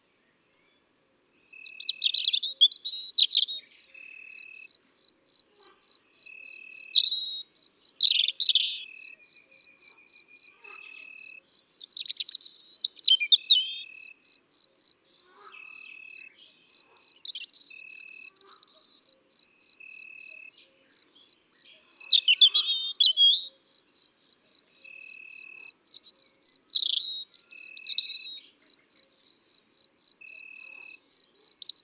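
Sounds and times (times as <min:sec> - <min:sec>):
European robin singing in the countryside: 0:01.4 - 0:04.6, 0:06.5 - 0:14.2, 0:15.5 - 0:19.1, 0:20.3 - 0:23.6, 0:26.0 - 0:29.0, 0:30.3 - 0:31.8.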